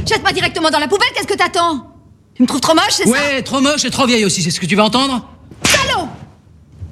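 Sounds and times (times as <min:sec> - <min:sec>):
speech: 0:00.0 - 0:05.7
slaps in the face: 0:05.6 - 0:06.0.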